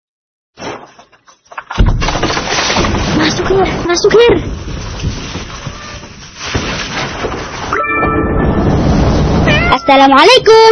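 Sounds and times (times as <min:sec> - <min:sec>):
thunder: 0:02.8 - 0:09.8
speech: 0:03.5 - 0:05.1, 0:09.9 - 0:10.7.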